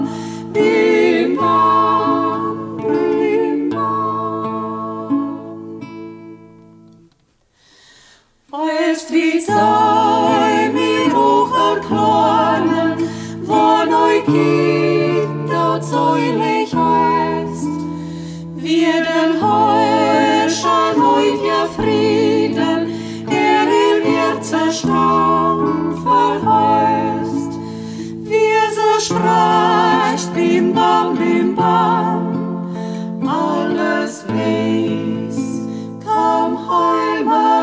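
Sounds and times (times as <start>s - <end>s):
vocal trio singing in local dialect: 0.0s - 6.2s, 8.5s - 37.6s.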